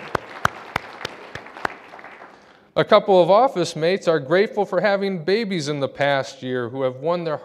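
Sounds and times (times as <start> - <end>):
sharp hand claps: 0.0 - 2.7
speech: 2.8 - 7.4.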